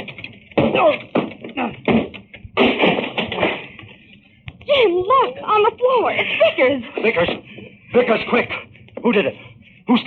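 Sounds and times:
locked door splintering crash: 0:00.0 - 0:04.0
rattling debris: 0:00.0 - 0:04.3
speech: 0:00.8 - 0:02.0, 0:05.5 - 0:10.0.

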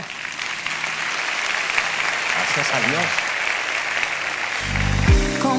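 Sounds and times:
audience applause: 0:00.0 - 0:05.4
speech: 0:02.6 - 0:03.3.

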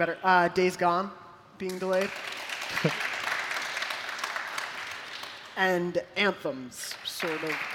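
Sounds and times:
speech: 0:00.0 - 0:03.1, 0:05.6 - 0:07.7
sparse audience applause: 0:02.1 - 0:05.5, 0:07.2 - 0:07.7.

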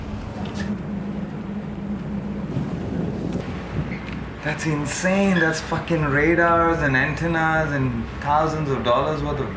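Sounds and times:
dull drone: 0:00.0 - 0:06.8
wind at sea: 0:00.0 - 0:09.5
speech: 0:04.4 - 0:09.5.

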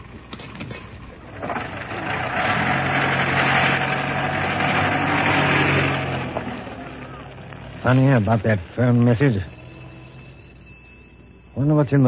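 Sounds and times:
taxi engine idling outside house: 0:00.0 - 0:11.6
speech: 0:07.9 - 0:09.5, 0:11.6 - 0:12.0.

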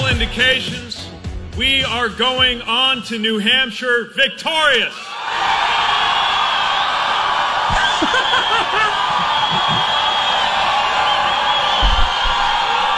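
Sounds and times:
speech: 0:00.2 - 0:01.0, 0:01.6 - 0:05.1
large crowd cheering: 0:05.0 - 0:12.9
whoops and yells: 0:05.1 - 0:12.9
people laughing: 0:07.6 - 0:10.7.

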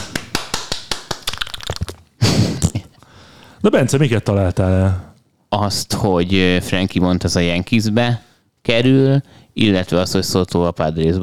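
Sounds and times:
applause: 0:00.0 - 0:01.9
speech: 0:03.6 - 0:11.2.

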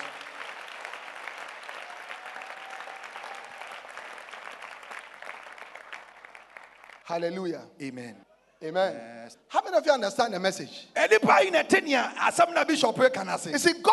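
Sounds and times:
audience clapping: 0:00.0 - 0:07.5
speech: 0:07.1 - 0:13.9.

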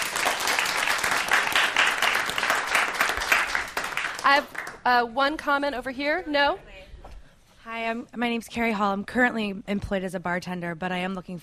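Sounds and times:
audience applause: 0:00.0 - 0:04.8
speech: 0:04.3 - 0:06.7, 0:07.6 - 0:11.4.

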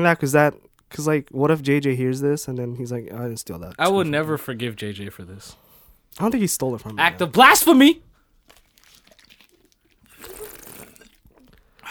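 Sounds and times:
speech: 0:00.0 - 0:08.1
person drinking water: 0:08.2 - 0:11.9.

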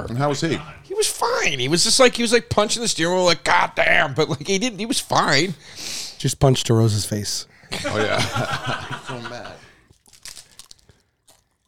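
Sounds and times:
speech: 0:00.0 - 0:09.6
laughter: 0:07.7 - 0:09.7
stale chip being crunched: 0:09.9 - 0:11.6.

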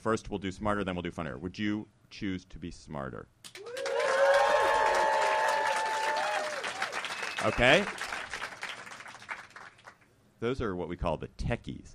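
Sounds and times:
speech: 0:00.0 - 0:03.7, 0:07.4 - 0:08.1, 0:10.4 - 0:11.9
audience whooping: 0:03.5 - 0:09.1
audience applause: 0:03.6 - 0:10.0.

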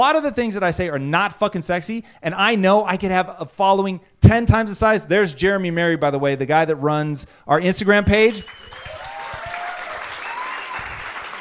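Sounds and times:
speech: 0:00.0 - 0:08.9
faint high whistle-like tones: 0:08.4 - 0:09.1
audience clapping: 0:08.4 - 0:11.4.

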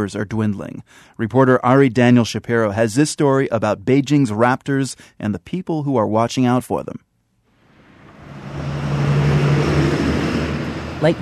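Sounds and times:
speech: 0:00.0 - 0:07.0, 0:11.0 - 0:11.2
heavy city street traffic around the Temple of Heaven: 0:07.7 - 0:11.2.

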